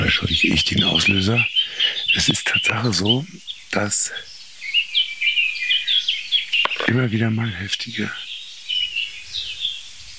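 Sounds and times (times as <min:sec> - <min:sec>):
blackbird alarm calls: 0:00.0 - 0:10.1
speech: 0:00.2 - 0:04.3, 0:06.9 - 0:08.2.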